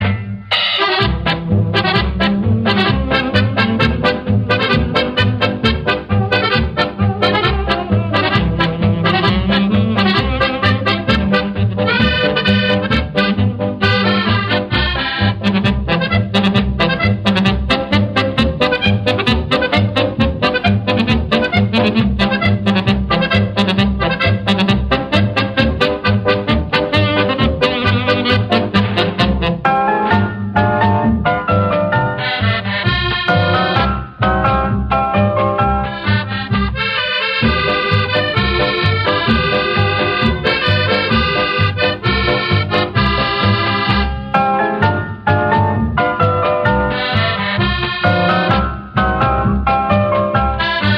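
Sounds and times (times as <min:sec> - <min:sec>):
polka music: 0:00.0 - 0:50.9.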